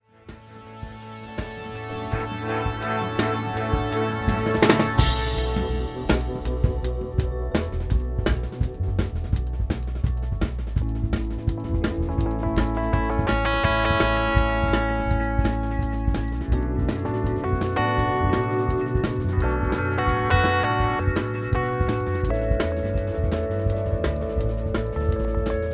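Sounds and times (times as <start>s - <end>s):
keys solo in the middle eight: 0.1s - 25.7s.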